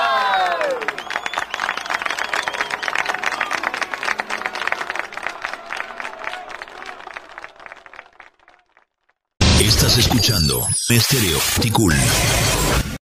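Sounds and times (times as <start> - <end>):
audience applause: 0.0 - 9.1
speech: 10.0 - 12.9.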